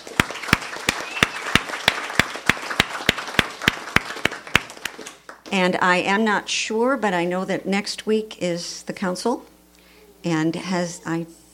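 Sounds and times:
audience applauding the soup cooks: 0.0s - 5.5s
loud regular hand claps: 0.0s - 5.5s
speech: 5.5s - 9.5s, 10.2s - 11.4s.

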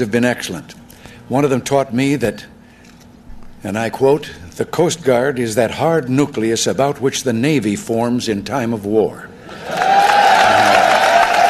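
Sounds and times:
speech: 0.0s - 2.5s, 3.6s - 10.0s
audience applause: 9.5s - 11.4s.

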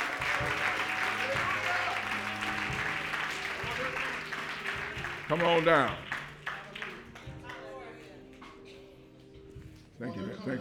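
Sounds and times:
audience hand clapping: 0.0s - 7.9s
speech: 5.3s - 6.0s, 10.0s - 10.5s.

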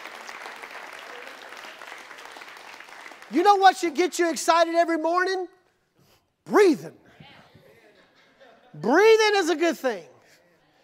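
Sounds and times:
audience clapping hands: 0.0s - 4.7s
speech: 3.3s - 5.6s, 6.5s - 7.0s, 8.8s - 10.1s
laughter: 7.6s - 9.1s.

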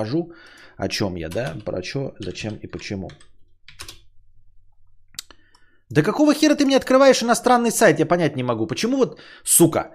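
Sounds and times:
speech: 0.0s - 3.3s, 5.9s - 9.9s
typing a search on a computer keyboard: 1.3s - 4.1s.

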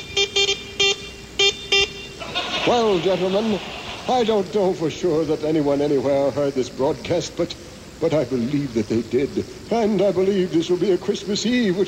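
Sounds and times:
Morse code all-clear signal beeps: 0.0s - 4.1s
laughter: 2.2s - 4.8s
speech: 2.6s - 11.8s.

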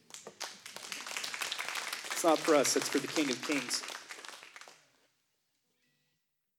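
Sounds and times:
audience applauding: 0.0s - 4.9s
speech: 2.2s - 4.0s.

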